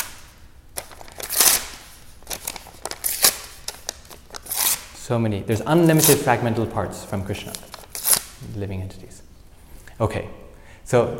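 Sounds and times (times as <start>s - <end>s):
paper tearing: 0.8s - 5.0s, 5.9s - 6.3s, 7.4s - 8.4s
speech: 5.1s - 7.7s, 8.4s - 9.3s, 10.0s - 11.1s.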